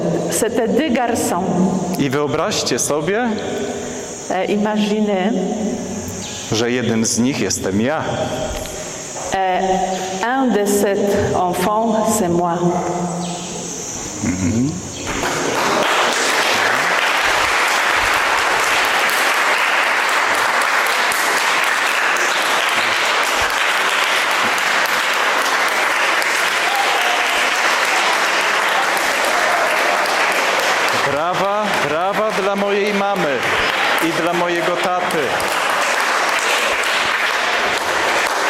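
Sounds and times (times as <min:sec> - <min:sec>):
speech: 0:00.3 - 0:08.6, 0:09.4 - 0:13.2, 0:14.2 - 0:14.9
audience applause: 0:15.1 - 0:38.4
voices cheering: 0:15.6 - 0:38.4.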